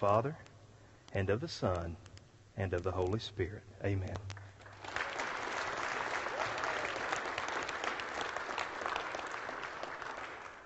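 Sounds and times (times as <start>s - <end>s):
speech: 0.0s - 0.5s, 1.1s - 4.4s
audience applause: 4.6s - 10.6s.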